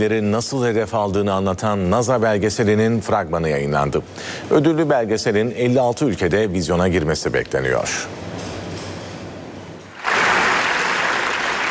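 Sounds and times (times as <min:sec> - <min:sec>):
speech: 0:00.0 - 0:08.5
standing ovation for the Israeli directors of a documentary: 0:10.0 - 0:11.6.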